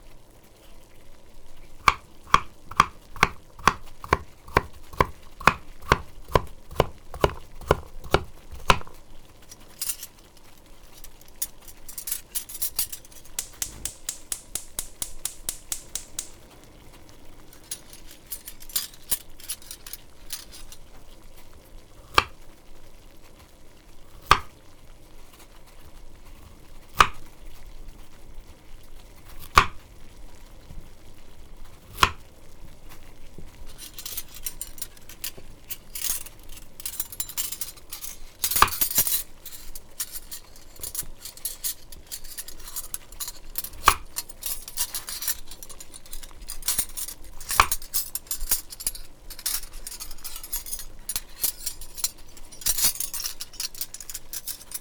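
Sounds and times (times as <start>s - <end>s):
kitchen sounds: 0.4s - 54.7s.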